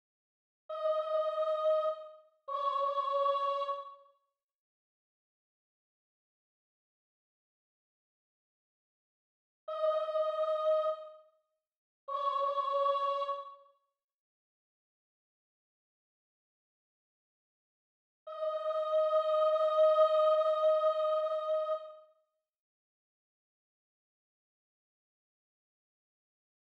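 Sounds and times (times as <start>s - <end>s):
soprano singing: 0.7s - 4.0s, 9.7s - 11.2s, 12.1s - 13.6s, 18.3s - 22.0s.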